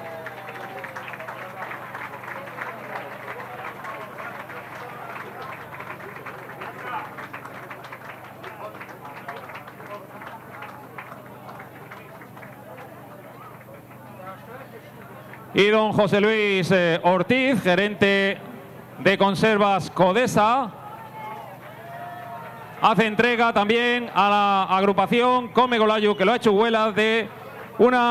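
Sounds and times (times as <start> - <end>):
crowd applause: 0.0 - 15.7, 20.8 - 24.1
speech: 15.6 - 18.4, 19.0 - 20.8, 22.8 - 28.0.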